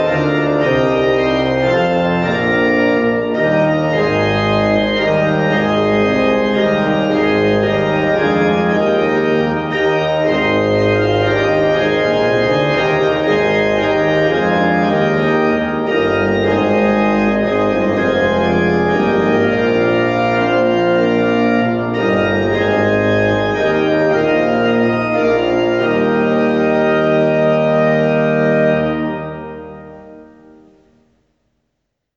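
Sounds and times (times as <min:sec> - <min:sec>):
organ playing: 0:00.0 - 0:31.0.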